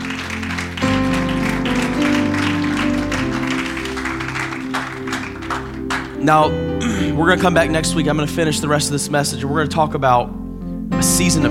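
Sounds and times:
audience clapping hands in praise: 0:00.0 - 0:06.3
organ-like chord: 0:00.0 - 0:11.4
speech: 0:06.2 - 0:10.4, 0:11.0 - 0:11.4.

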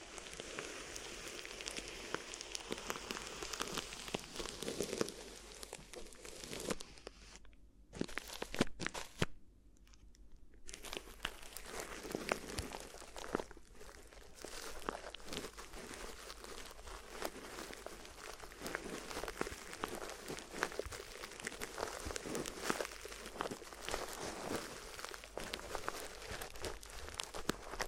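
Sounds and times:
crinkly ear massage crackling and rustling: 0:00.0 - 0:27.8.

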